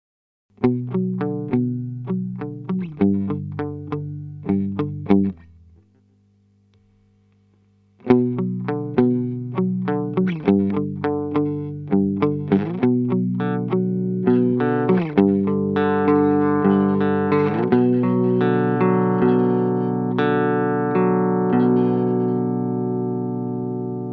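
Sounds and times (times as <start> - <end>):
guitar through Keeley Compressor Plus with less compression: 0.5 - 24.1.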